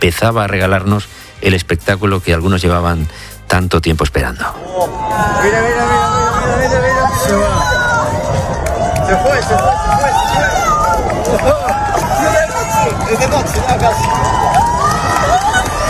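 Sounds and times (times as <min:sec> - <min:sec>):
speech: 0:00.0 - 0:07.8, 0:09.1 - 0:10.6, 0:11.3 - 0:11.9, 0:13.1 - 0:14.5
large outdoor crowd cheering and shouting during a solar eclipse: 0:04.5 - 0:15.8.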